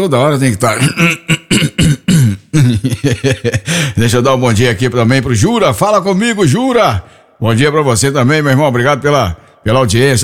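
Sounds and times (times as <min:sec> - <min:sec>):
speech: 0:00.0 - 0:10.2
person clearing throat in the morning: 0:00.8 - 0:02.9
laughter: 0:02.6 - 0:03.8.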